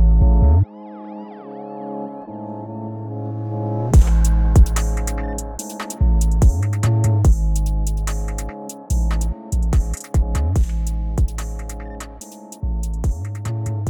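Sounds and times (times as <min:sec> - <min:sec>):
Italian drill music: 0:04.0 - 0:13.8.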